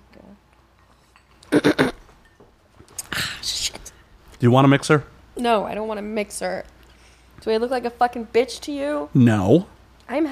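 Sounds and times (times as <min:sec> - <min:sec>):
glasses clinking in a toast: 0:00.8 - 0:01.5, 0:02.1 - 0:02.6
speech: 0:04.4 - 0:06.7, 0:07.4 - 0:10.3.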